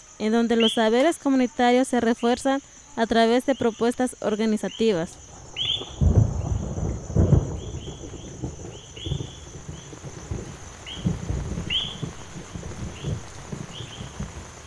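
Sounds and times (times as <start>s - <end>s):
speech: 0.2s - 6.0s
bird chirping: 3.4s - 10.0s, 10.8s - 14.2s
low thunder rumbles: 5.2s - 14.6s
heavy rain pouring: 5.3s - 14.6s.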